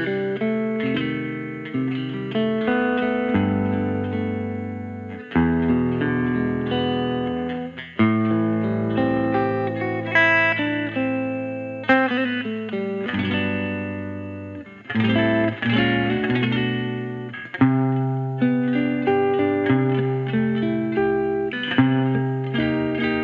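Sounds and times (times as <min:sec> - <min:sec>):
teal archtop guitar playing: 0:00.0 - 0:23.2.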